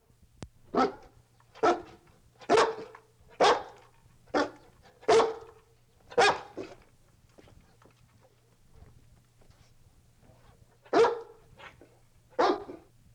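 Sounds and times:
dog barking: 0:00.7 - 0:05.5, 0:06.2 - 0:06.7, 0:10.9 - 0:11.4, 0:12.4 - 0:12.9.

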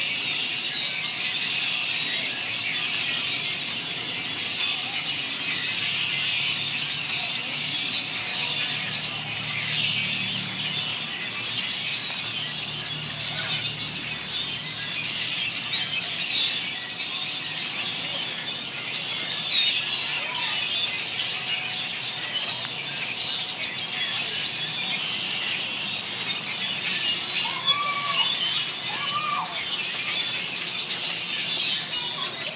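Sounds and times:
birds chirping chorus: 0:00.0 - 0:32.5.

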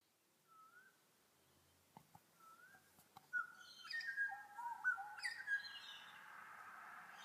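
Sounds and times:
bird chirps and whistles: 0:00.5 - 0:01.0, 0:02.4 - 0:06.0.

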